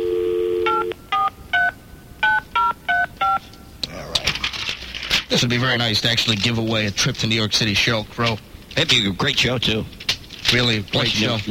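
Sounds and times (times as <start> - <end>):
telephone dial tone: 0.0 - 1.3
touch-tone dialing beeps: 0.1 - 3.5
speech: 5.3 - 11.4.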